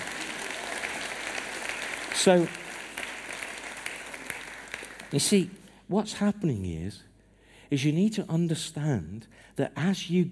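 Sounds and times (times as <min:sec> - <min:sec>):
audience applause: 0:00.0 - 0:05.4
speech: 0:02.2 - 0:02.6, 0:05.1 - 0:07.1, 0:07.7 - 0:10.2.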